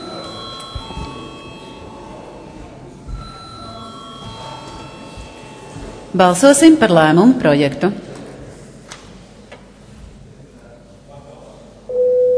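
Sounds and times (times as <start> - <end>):
parliament session bell ringing: 0.0 - 6.7
low murmur of room noise and faint voices: 0.0 - 11.9
speech: 6.1 - 8.0.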